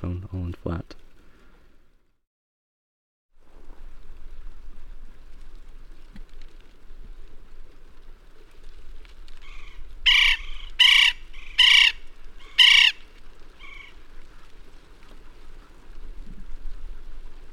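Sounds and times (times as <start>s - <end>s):
speech: 0.0s - 1.0s
West Indian woodpecker calling: 9.4s - 13.0s, 13.6s - 14.0s.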